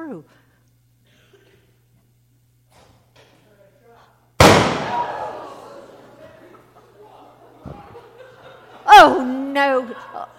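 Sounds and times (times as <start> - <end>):
gunshot in an audio drama: 4.4 - 5.2
laughter: 4.8 - 10.3.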